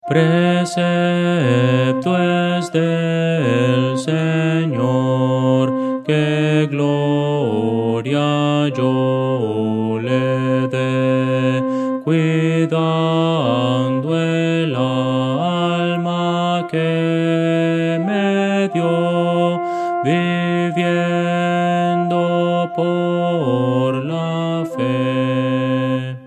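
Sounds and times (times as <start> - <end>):
contralto voice: 0.0 - 26.2.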